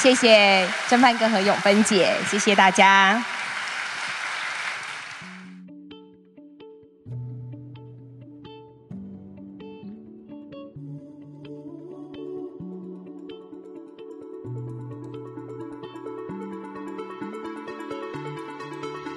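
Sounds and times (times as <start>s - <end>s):
speech: 0.0s - 3.4s
crowd clapping: 0.0s - 5.6s
soft steady keyboard music with sustained low notes: 5.6s - 19.1s.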